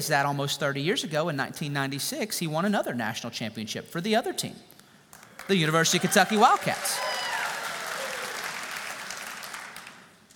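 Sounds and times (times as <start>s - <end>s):
speech: 0.0s - 4.8s, 5.5s - 7.2s
audience applause: 5.1s - 10.3s.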